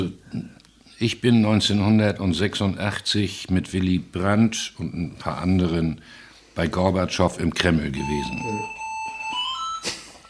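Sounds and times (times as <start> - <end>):
speech: 1.0 - 8.8
telephone ringing: 7.9 - 9.9.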